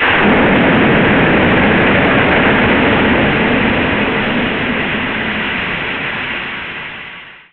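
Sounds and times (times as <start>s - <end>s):
coolant dump: 0.0s - 7.5s.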